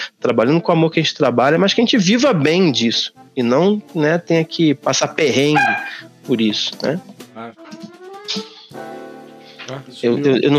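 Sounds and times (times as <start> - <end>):
speech: 0.2 - 8.9, 9.7 - 10.5
dog barking with a whining edge: 5.6 - 6.0.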